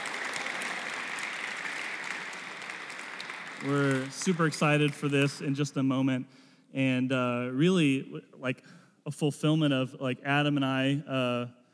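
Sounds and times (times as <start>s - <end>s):
audience clapping: 0.0s - 5.8s
speech: 3.6s - 11.6s.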